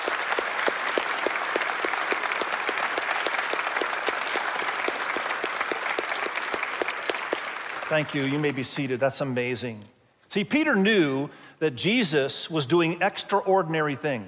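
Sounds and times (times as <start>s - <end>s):
audience applauding: 0.0s - 9.0s
speech: 7.9s - 14.2s.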